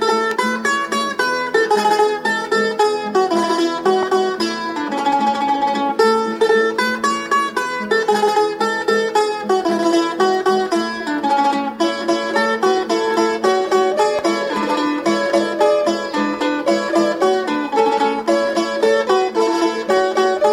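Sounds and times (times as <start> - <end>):
jota folk music: 0.0 - 20.5.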